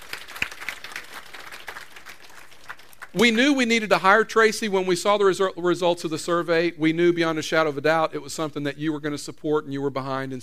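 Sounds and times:
crowd applauding: 0.0s - 3.2s
speech: 3.1s - 10.4s.

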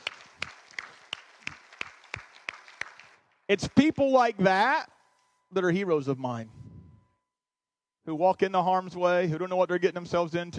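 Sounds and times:
round of applause from a crowd: 0.0s - 3.2s
speech: 3.5s - 4.9s, 5.5s - 6.6s, 8.0s - 10.5s.

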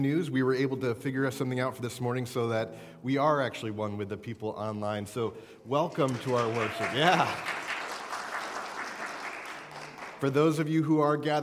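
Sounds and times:
speech: 0.0s - 7.6s, 10.2s - 11.4s
audience applauding in a church: 5.8s - 10.5s.

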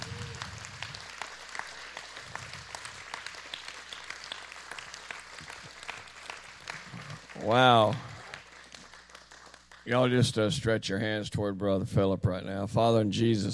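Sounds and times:
audience applause: 0.0s - 10.2s
speech: 7.4s - 8.1s, 9.9s - 13.5s.

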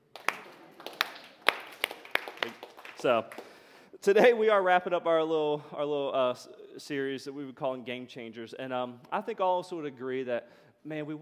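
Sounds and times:
slow hand claps: 0.0s - 3.6s
speech: 3.0s - 11.2s.

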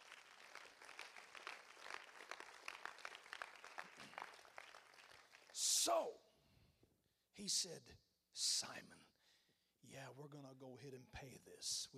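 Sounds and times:
audience hand clapping: 0.0s - 5.8s
speech: 5.8s - 6.3s, 7.4s - 9.1s, 9.8s - 11.9s.

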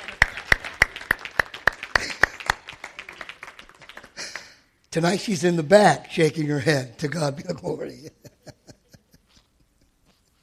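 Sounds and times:
crowd applause: 0.0s - 4.6s
rhythmic clapping: 0.0s - 4.7s
speech: 4.9s - 8.2s
laughter: 7.1s - 10.2s.

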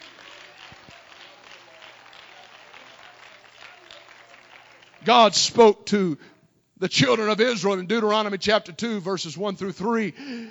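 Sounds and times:
audience clapping: 0.0s - 5.8s
speech: 5.0s - 10.4s.

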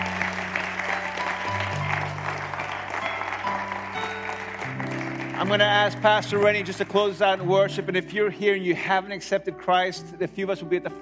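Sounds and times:
audience applause: 0.0s - 7.5s
speech: 5.4s - 11.0s.

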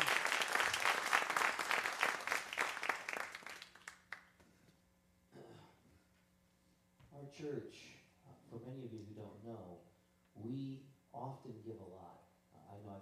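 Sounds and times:
audience applause: 0.0s - 4.3s
speech: 7.4s - 13.0s.

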